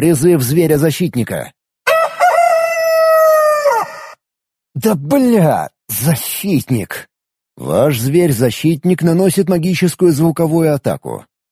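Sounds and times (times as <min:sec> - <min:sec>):
speech: 0:00.0 - 0:01.6, 0:04.8 - 0:11.3
rooster crowing: 0:01.9 - 0:04.2.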